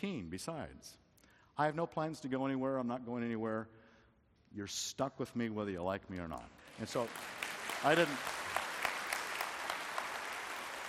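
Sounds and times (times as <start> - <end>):
speech: 0.0 - 1.0, 1.6 - 3.8, 4.5 - 8.4
faint scattered audience clapping: 6.7 - 10.8.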